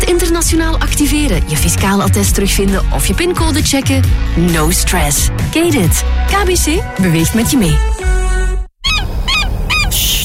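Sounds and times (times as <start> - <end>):
speech: 0.1 - 8.2
seagulls calling: 8.8 - 10.2.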